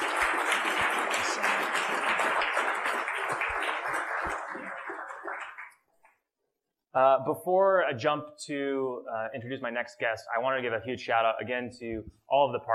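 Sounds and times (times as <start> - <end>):
audience clapping at an event in Tennessee: 0.0 - 5.9
speech: 7.0 - 12.7.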